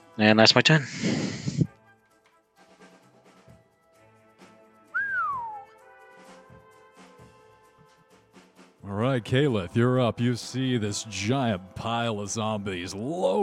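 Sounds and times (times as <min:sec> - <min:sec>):
speech: 0:00.2 - 0:01.6, 0:09.1 - 0:13.4
person whistling downward: 0:04.9 - 0:05.7.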